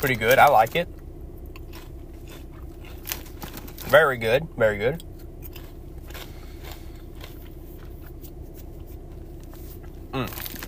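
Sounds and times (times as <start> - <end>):
speech: 0.0 - 1.0, 3.9 - 5.1, 10.1 - 10.5
steady low hum: 0.0 - 10.6
eating crunchy Bourbon Street Smoky Sweet barbecue chips: 1.4 - 4.0, 5.4 - 8.3, 9.1 - 10.6.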